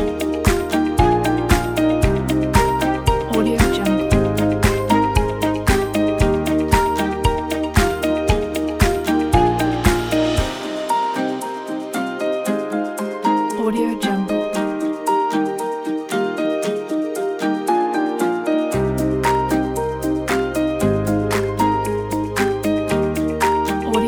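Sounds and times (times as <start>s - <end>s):
uplifting corporate music: 0.0s - 24.0s.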